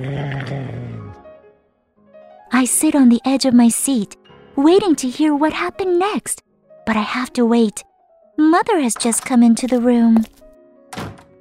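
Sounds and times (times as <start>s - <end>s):
speech: 0.0s - 0.8s, 2.6s - 11.1s
animal growl: 0.0s - 1.2s.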